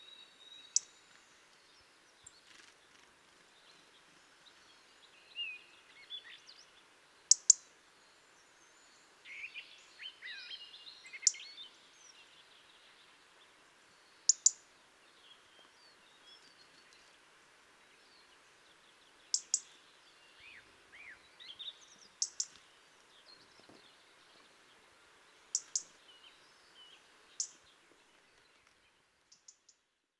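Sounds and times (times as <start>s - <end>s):
faint soft chirps from other birds: 0.0s - 13.3s, 13.9s - 17.2s, 17.9s - 30.0s
European robin tick calls: 0.7s - 1.2s, 7.3s - 7.7s, 14.3s - 14.7s, 19.3s - 19.8s, 22.1s - 22.7s, 25.5s - 26.0s, 27.3s - 27.6s, 28.6s - 29.8s.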